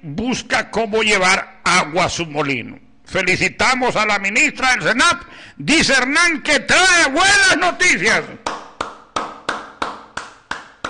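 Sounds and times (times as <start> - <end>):
speech: 0.0 - 8.4
rhythmic hand clapping: 8.4 - 10.8.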